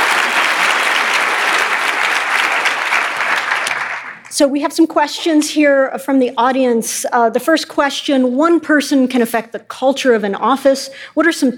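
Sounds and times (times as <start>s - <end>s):
audience applause for a guest speaker at a question-and-answer event: 0.0s - 4.3s
speech: 4.4s - 11.5s.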